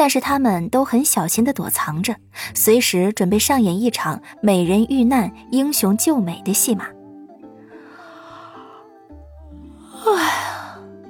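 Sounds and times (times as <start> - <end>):
speech: 0.0 - 7.0, 10.0 - 10.5
yawn: 7.7 - 9.0, 9.8 - 10.9.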